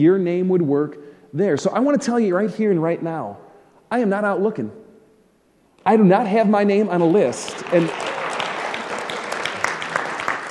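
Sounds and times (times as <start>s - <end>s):
speech: 0.0s - 4.8s, 5.8s - 8.1s
audience clapping: 7.0s - 10.4s.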